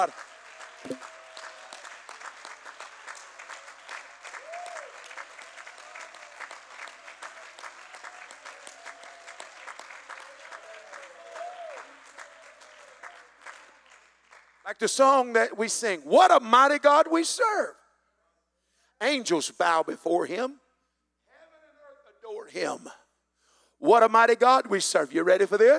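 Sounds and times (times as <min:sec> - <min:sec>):
speech: 0:00.0 - 0:01.1, 0:14.7 - 0:17.8, 0:19.0 - 0:20.6, 0:22.5 - 0:23.0, 0:23.8 - 0:25.7
audience applause: 0:00.0 - 0:14.6
whoops and shouts: 0:04.3 - 0:05.1, 0:10.5 - 0:12.9.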